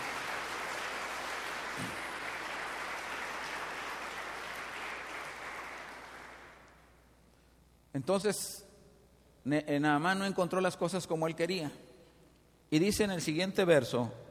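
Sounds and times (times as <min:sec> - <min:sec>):
audience applause: 0:00.0 - 0:06.8
speech: 0:08.0 - 0:08.6, 0:09.4 - 0:11.8, 0:12.7 - 0:14.2.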